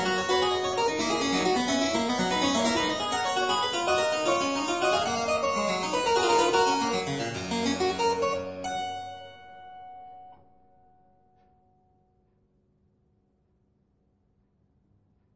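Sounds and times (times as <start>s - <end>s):
two-manual harpsichord piece: 0.0s - 10.4s.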